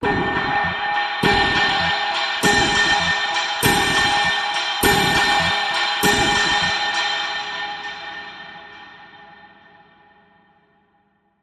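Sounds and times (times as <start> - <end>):
pulsing silver bells: 0.0 - 7.2.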